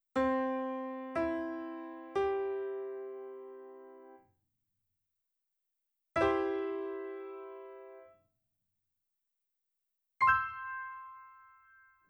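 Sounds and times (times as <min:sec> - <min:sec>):
piano: 0:00.0 - 0:04.3, 0:06.2 - 0:08.2, 0:10.2 - 0:12.0.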